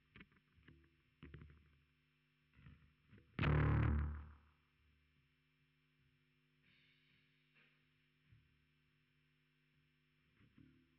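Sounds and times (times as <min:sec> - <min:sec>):
bass guitar through SansAmp: 0:03.4 - 0:04.4.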